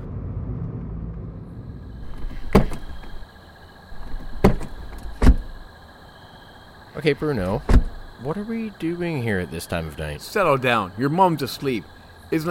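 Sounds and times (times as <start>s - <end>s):
car pulling into a residential neighborhood and stopping: 0.0s - 9.0s
sharp clunks: 2.0s - 3.3s, 4.0s - 5.6s, 7.6s - 8.1s
speech: 7.0s - 12.5s.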